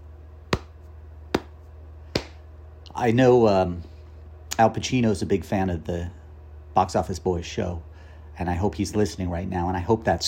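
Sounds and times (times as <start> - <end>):
grandpa knee slap: 0.5 - 2.4
speech: 3.0 - 3.9, 4.6 - 6.2, 6.8 - 10.2.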